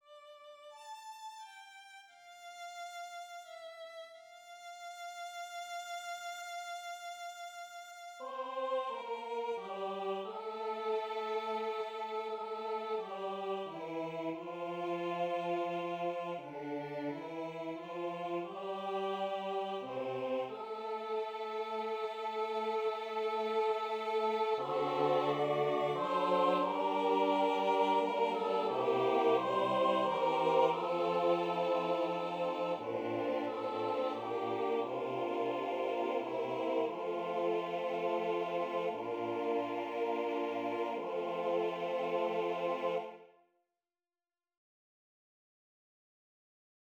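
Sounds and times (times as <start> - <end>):
choir singing: 8.2 - 43.3.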